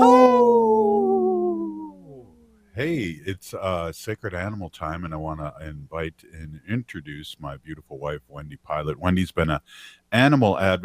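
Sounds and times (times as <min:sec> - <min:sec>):
lone wolf howling: 0:00.0 - 0:02.2
speech: 0:02.8 - 0:10.8.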